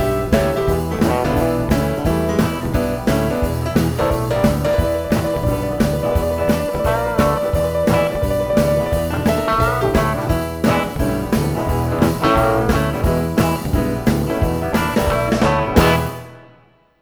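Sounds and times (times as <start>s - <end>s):
Delta blues drumming: 0.0s - 16.4s.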